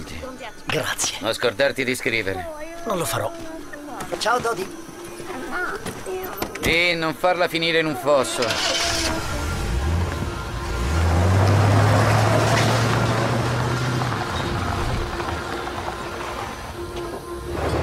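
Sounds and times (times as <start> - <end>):
speech: 0.2 - 8.8
road roar: 8.1 - 17.8
car engine revving driving away on the road to California: 8.4 - 17.8.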